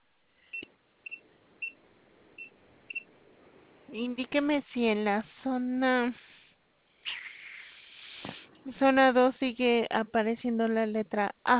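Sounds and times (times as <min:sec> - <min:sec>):
hiss: 0:00.0 - 0:11.5
phone keypad beeps: 0:02.4 - 0:03.1
speech: 0:03.9 - 0:06.3, 0:08.7 - 0:11.5.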